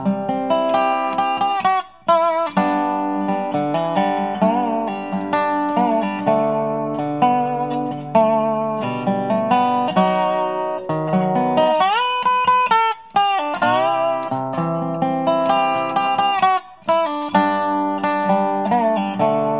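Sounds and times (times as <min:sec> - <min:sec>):
solo Dobro ballad: 0:00.0 - 0:19.5.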